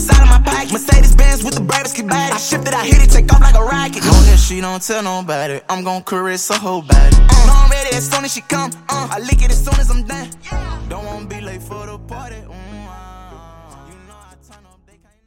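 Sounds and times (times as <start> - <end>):
breakbeat: 0.0 - 4.6, 6.6 - 10.4
a cappella vocals: 0.0 - 15.2.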